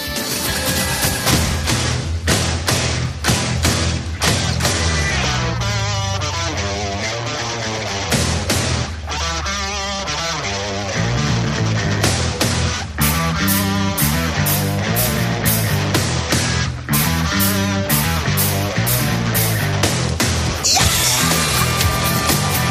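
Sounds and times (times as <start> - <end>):
hard-hitting drums and crashing cymbals: 0.0 - 6.0, 8.1 - 9.0, 12.0 - 22.6
loud rock music with screamed vocals: 0.0 - 22.6.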